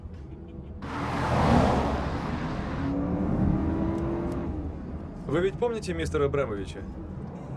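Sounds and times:
car driving into underground parking garage in Berlin: 0.0s - 7.5s
speech: 5.3s - 7.2s.

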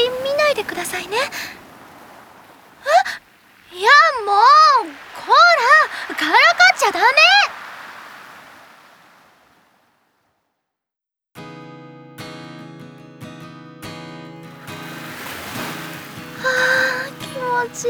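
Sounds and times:
ocean waves at the beach: 0.0s - 10.3s, 14.3s - 17.8s
speech: 0.6s - 1.6s, 6.1s - 7.5s.

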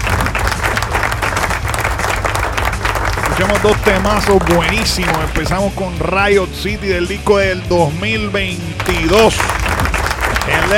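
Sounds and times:
applause in a radio studio: 0.0s - 5.7s, 8.8s - 10.7s
speech: 3.4s - 9.8s.

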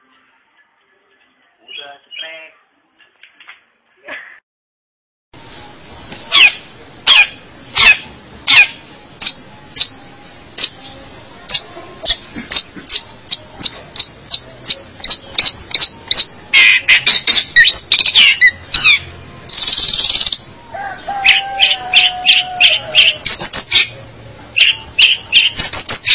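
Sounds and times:
long-tailed shrike singing: 5.6s - 26.1s.

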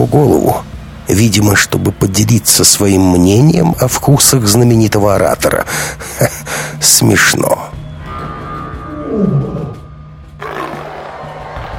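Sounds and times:
speech: 0.0s - 7.7s
low steady hum: 0.0s - 10.4s
black panther and two lions roaring in an ancient Roman arena: 8.1s - 11.0s.

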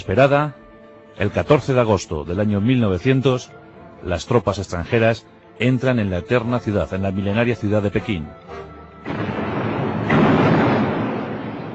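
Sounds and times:
speech: 0.0s - 0.6s, 1.2s - 9.4s
cannon fire explosions: 9.0s - 11.7s.

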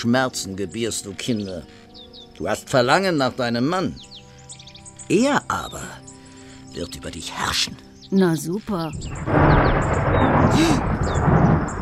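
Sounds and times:
speech: 0.0s - 4.1s, 5.1s - 6.0s, 6.8s - 11.0s
thunder clap: 8.9s - 11.8s.

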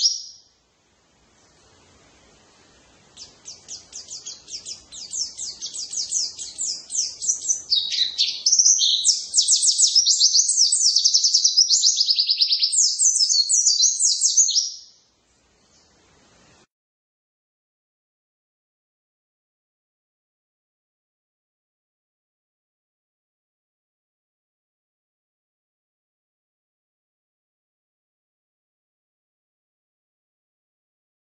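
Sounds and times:
white-eye twittering song with rapid chatter: 0.0s - 0.6s, 3.1s - 15.0s.

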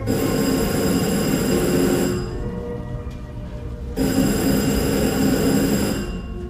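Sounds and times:
telephone ringing: 0.1s - 2.7s, 4.0s - 6.4s.

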